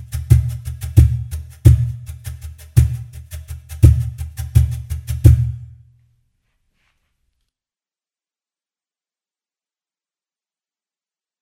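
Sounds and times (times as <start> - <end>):
cajon drumming: 0.0 - 5.8.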